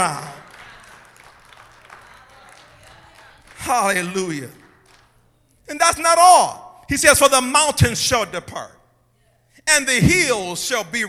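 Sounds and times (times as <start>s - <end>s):
speech: 0.0s - 0.4s, 3.6s - 4.6s, 5.7s - 8.8s, 9.6s - 11.0s
audience clapping hands: 0.0s - 5.2s.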